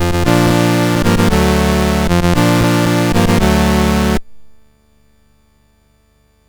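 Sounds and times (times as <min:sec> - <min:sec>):
game music on MOS6581R4 SID chip: 0:00.0 - 0:04.2.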